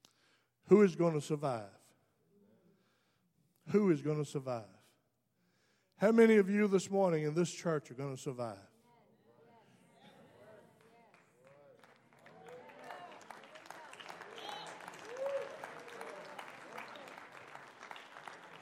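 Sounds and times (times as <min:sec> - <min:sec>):
speech: 0:00.7 - 0:01.8, 0:03.7 - 0:04.8, 0:06.0 - 0:08.7
people calling and cheering: 0:09.8 - 0:17.4
audience clapping hands: 0:10.8 - 0:18.6.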